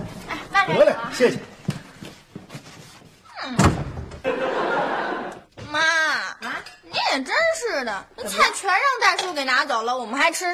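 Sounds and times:
speech: 0.7s - 1.5s, 7.1s - 10.5s
door slamming: 3.5s - 4.3s
laughter: 4.2s - 5.5s.

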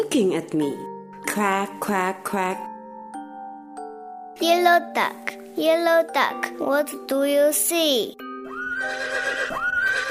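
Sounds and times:
speech: 0.1s - 2.7s, 4.4s - 10.0s
horse neighing: 8.6s - 10.0s.

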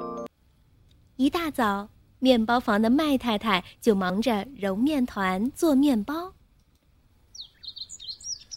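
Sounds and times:
speech: 1.2s - 6.3s
two small birds chirping: 7.2s - 8.5s.

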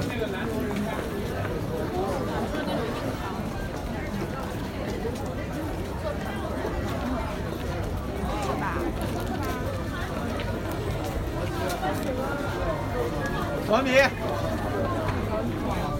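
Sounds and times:
crowd babble in Nanluoguxiang: 0.0s - 15.9s.

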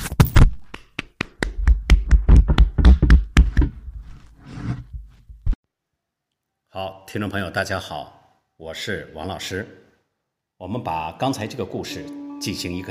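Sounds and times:
sparse audience hand claps: 0.6s - 3.7s
speech: 6.8s - 9.8s, 10.6s - 12.8s.

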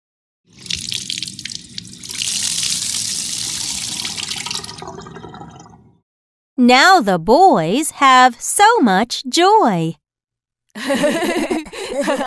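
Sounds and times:
tap water running as a toy is washed: 0.5s - 6.0s
speech: 6.6s - 10.0s, 10.8s - 12.2s
laughter: 10.8s - 12.2s.

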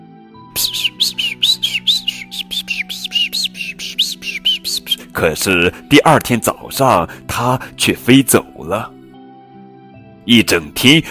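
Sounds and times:
small bird singing: 0.6s - 5.1s
speech: 5.2s - 9.0s, 10.3s - 11.0s.

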